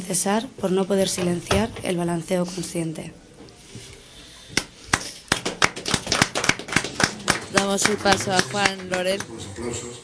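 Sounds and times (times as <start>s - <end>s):
speech: 0.1s - 3.2s, 7.7s - 10.0s
audience applause: 4.6s - 9.4s.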